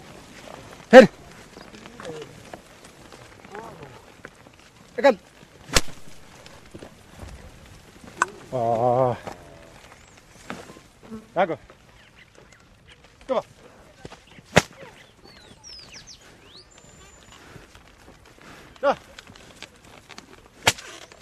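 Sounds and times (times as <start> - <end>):
faint plodding footsteps of oxen ploughing: 0.0 - 21.2
whip cracking while oxen plough: 5.7 - 6.2, 14.5 - 14.8.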